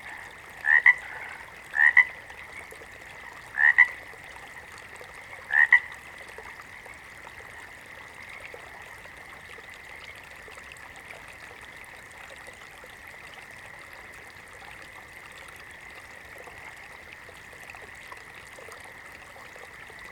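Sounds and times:
water frog giving short paired croaks: 0:00.0 - 0:06.0.

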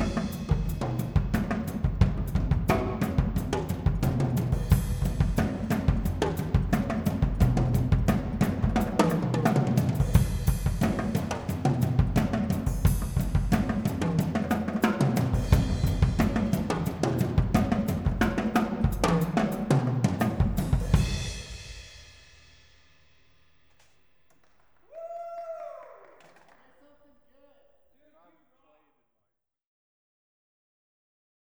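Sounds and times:
drum solo: 0:00.0 - 0:22.8.

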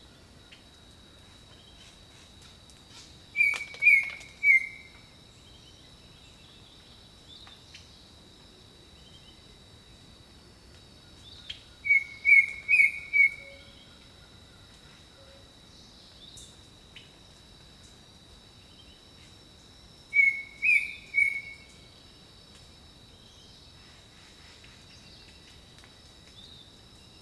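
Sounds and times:
high insect hum: 0:00.0 - 0:27.2
bird song whistled notes: 0:03.4 - 0:04.9, 0:11.9 - 0:13.7, 0:20.2 - 0:21.7.

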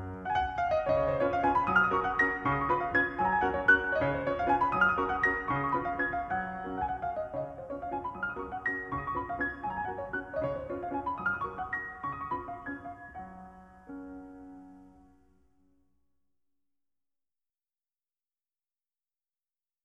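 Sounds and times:
waltz in G-flat major: 0:00.0 - 0:15.1.

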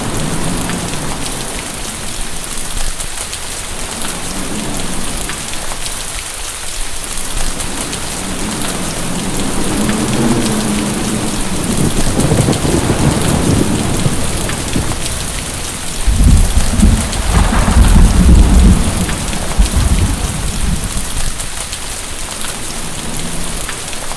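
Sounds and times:
heavy rain: 0:00.0 - 0:24.1
thunder: 0:08.3 - 0:21.4.

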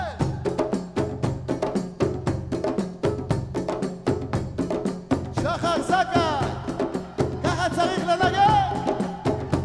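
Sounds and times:
Arabic drum song: 0:00.0 - 0:09.6.

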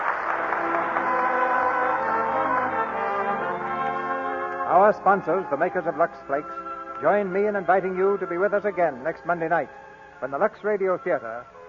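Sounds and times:
audience applause: 0:00.0 - 0:04.0
speech: 0:04.8 - 0:11.6.

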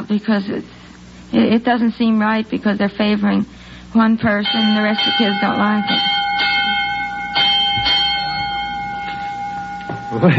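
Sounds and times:
speech: 0:00.1 - 0:06.1, 0:10.1 - 0:10.3
school bell ringing for end of class: 0:04.4 - 0:10.3.

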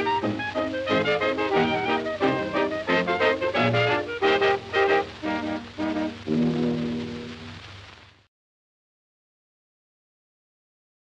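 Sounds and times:
instrumental music: 0:00.0 - 0:07.8.

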